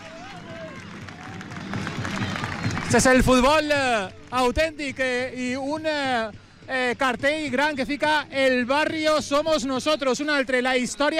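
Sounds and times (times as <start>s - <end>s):
football fans applauding players' entrance: 0.0s - 5.6s
speech: 2.9s - 11.1s.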